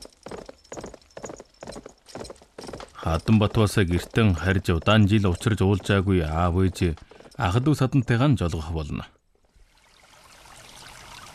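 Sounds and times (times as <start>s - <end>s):
horse hooves clip-clopping as riders set off: 0.0s - 8.2s
speech: 3.1s - 9.2s.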